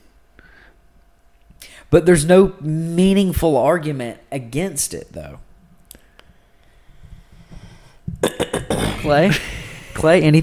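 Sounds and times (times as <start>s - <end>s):
speech: 1.9s - 5.5s, 9.1s - 10.4s
person clearing throat: 8.2s - 9.5s.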